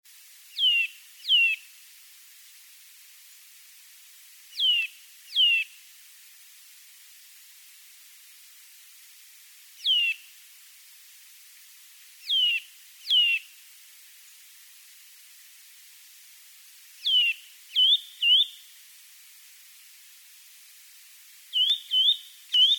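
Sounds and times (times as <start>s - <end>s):
Eurasian bullfinch calling: 0.6s - 1.6s, 4.6s - 5.6s, 9.8s - 10.2s, 12.3s - 13.4s, 17.0s - 18.6s, 21.5s - 22.7s.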